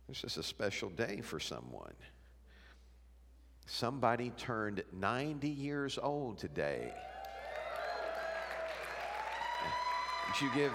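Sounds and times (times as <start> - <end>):
speech: 0.1 - 2.2, 3.7 - 7.2, 9.6 - 10.7
audience clapping: 7.0 - 10.7.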